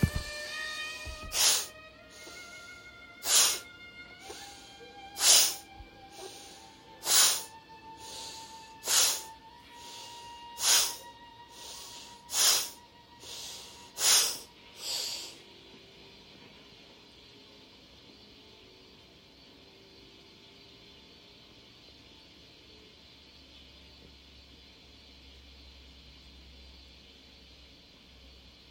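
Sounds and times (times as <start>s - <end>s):
sustained tonal drone: 0.0s - 26.8s
forceful breathy exhales in a breathing exercise: 1.3s - 2.4s, 3.2s - 3.6s, 4.3s - 15.4s
soft inhales: 4.2s - 15.4s.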